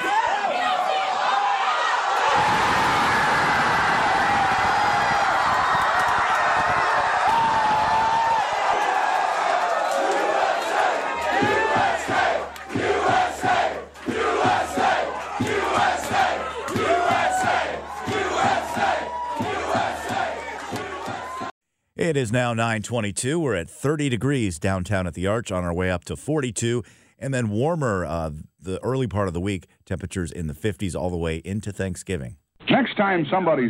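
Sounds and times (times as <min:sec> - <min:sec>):
crowd cheering in The Amsterdam bar during a US versus Wales football match: 0:00.0 - 0:21.6
speech: 0:22.2 - 0:33.6.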